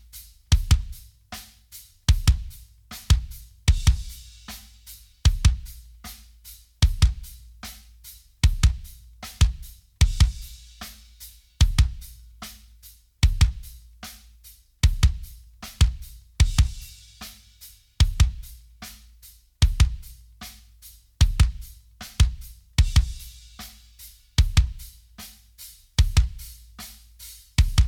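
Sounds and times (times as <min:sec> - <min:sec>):
kick drum: 0:00.0 - 0:01.2, 0:02.1 - 0:04.3, 0:05.2 - 0:05.9, 0:06.8 - 0:07.5, 0:08.4 - 0:10.6, 0:11.6 - 0:12.2, 0:13.2 - 0:13.8, 0:14.8 - 0:17.0, 0:18.0 - 0:18.6, 0:19.6 - 0:20.2, 0:21.2 - 0:23.4, 0:24.4 - 0:25.0, 0:26.0 - 0:26.5, 0:27.6 - 0:27.8.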